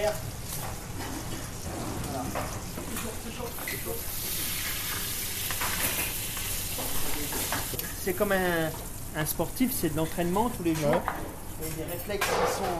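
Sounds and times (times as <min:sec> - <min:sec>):
speech: 0:00.0 - 0:00.3, 0:02.3 - 0:04.5, 0:06.8 - 0:12.7
meat cooking gently in a pan at around 70 degrees: 0:00.0 - 0:09.8.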